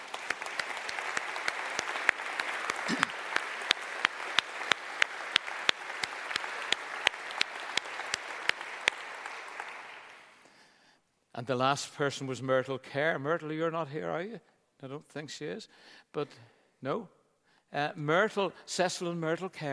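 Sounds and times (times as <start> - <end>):
audience clapping: 0.0 - 10.5
speech: 2.9 - 3.1, 11.5 - 19.7.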